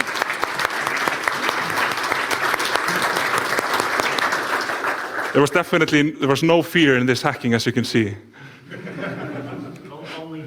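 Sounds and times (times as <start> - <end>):
crowd clapping: 0.0 - 5.9
laughter: 1.3 - 3.9, 8.5 - 10.4
speech: 5.4 - 9.2.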